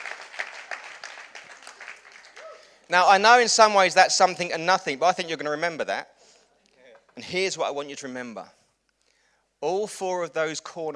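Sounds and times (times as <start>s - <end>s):
audience applause: 0.0s - 2.8s
speech: 2.9s - 6.1s, 7.2s - 8.6s, 9.6s - 10.9s.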